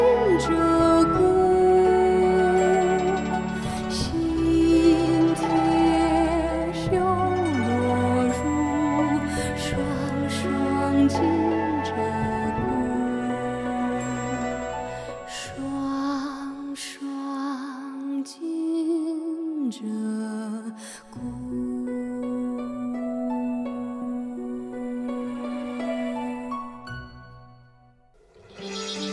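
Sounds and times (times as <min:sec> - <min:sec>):
pop song with a woman singing in a low sustained voice: 0:00.0 - 0:26.8.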